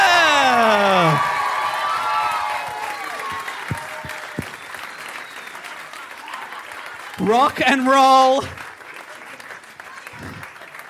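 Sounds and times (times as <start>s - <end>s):
loud whooping voice falling in pitch: 0.0s - 1.4s
scattered shouts from the audience: 0.0s - 4.2s
audience applause welcoming hosts onto the stage at a live show: 0.0s - 10.8s
speech: 7.3s - 8.6s.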